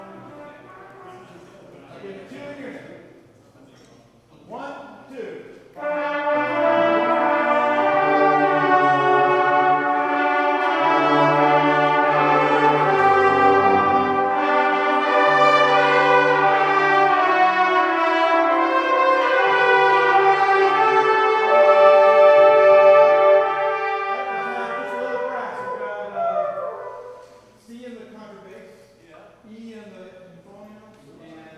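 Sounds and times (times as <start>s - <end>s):
brass melody: 0.0s - 1.5s, 5.8s - 27.6s.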